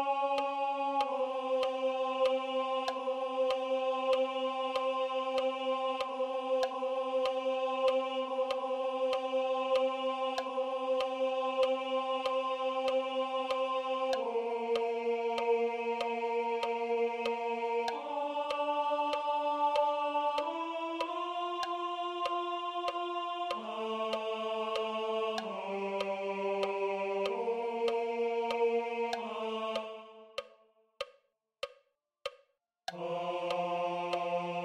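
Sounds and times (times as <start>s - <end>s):
tenors singing: 0.0s - 30.6s, 32.9s - 34.6s.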